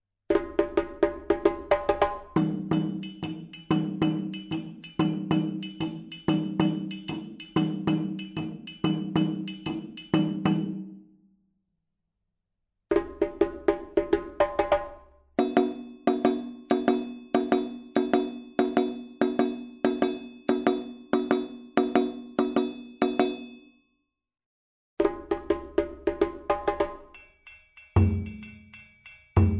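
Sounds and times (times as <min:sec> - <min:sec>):
djembe: 0:00.3 - 0:10.7, 0:12.9 - 0:22.6, 0:25.0 - 0:27.0
kuku rhythm on dunun drums: 0:00.3 - 0:11.0, 0:12.9 - 0:23.5, 0:25.0 - 0:29.5.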